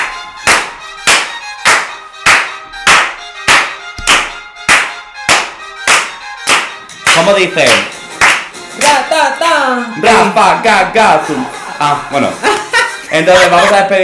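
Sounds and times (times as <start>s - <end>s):
hand clapping: 0.0s - 9.1s
speech: 7.3s - 7.9s, 8.8s - 14.0s
laughter: 11.2s - 14.0s.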